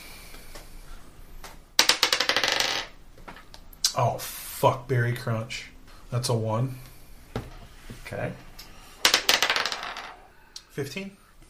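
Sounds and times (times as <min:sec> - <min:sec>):
dice being rolled: 0:01.4 - 0:03.8, 0:09.0 - 0:10.3
speech: 0:04.0 - 0:06.9, 0:08.1 - 0:08.5, 0:10.8 - 0:11.2.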